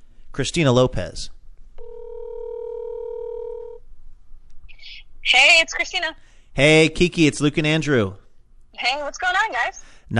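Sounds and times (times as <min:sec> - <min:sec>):
speech: 0:00.4 - 0:01.4, 0:05.2 - 0:08.2, 0:08.8 - 0:10.1
telephone dial tone while a call is being placed: 0:01.8 - 0:03.8.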